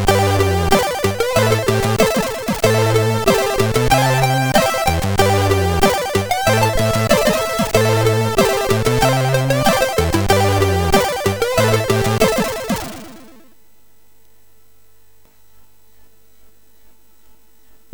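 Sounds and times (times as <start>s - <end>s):
funky MOS6581 sound chip music: 0.0s - 13.5s.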